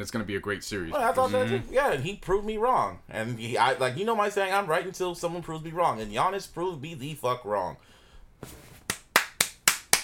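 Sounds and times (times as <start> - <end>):
speech: 0.0 - 8.6
person clapping: 8.8 - 10.0.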